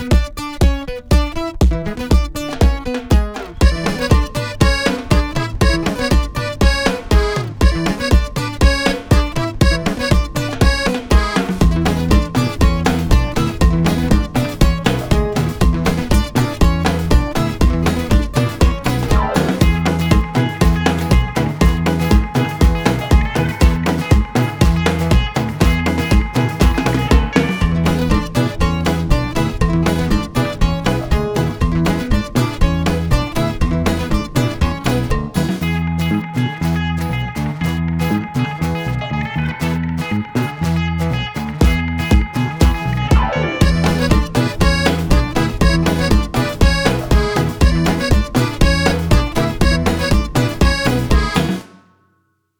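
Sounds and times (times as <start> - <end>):
cumbia music: 0.1 - 51.9.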